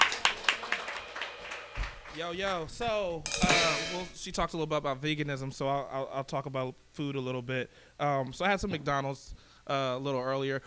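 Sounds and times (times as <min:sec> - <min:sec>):
audience clapping: 0:00.0 - 0:02.6
speech: 0:02.2 - 0:10.6.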